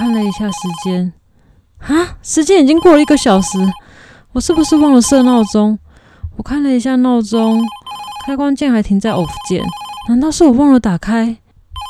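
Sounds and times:
telephone ringing: 0:00.0 - 0:01.2, 0:02.6 - 0:05.7, 0:07.3 - 0:10.3
speech: 0:00.3 - 0:01.2, 0:01.8 - 0:05.8, 0:06.4 - 0:11.4.

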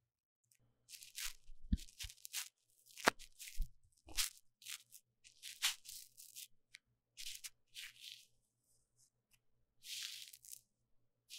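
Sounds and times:
deep cleaning of a microphone ear crunchy scratchy rubbing: 0:00.9 - 0:06.5, 0:07.2 - 0:08.3, 0:09.8 - 0:10.6.

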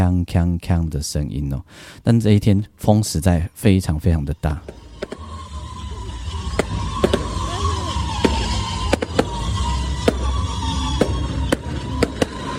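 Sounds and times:
speech: 0:00.0 - 0:04.8
firecrackers exploding: 0:04.6 - 0:12.5.

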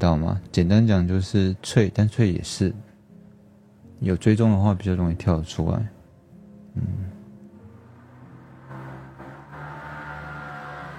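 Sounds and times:
speech: 0:00.0 - 0:02.9, 0:04.0 - 0:06.0, 0:06.8 - 0:07.1
motorcycle roaring past: 0:07.6 - 0:10.9.

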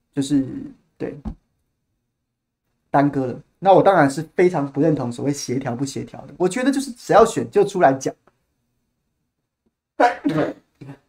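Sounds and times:
speech: 0:00.2 - 0:01.4, 0:02.9 - 0:08.2, 0:10.0 - 0:11.0
sneeze: 0:10.0 - 0:11.0.

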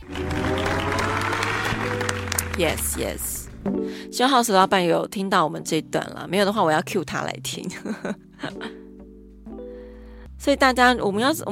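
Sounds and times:
hand clapping: 0:00.0 - 0:03.0
low hum: 0:00.0 - 0:03.8
speech: 0:02.6 - 0:08.8, 0:10.4 - 0:11.4.

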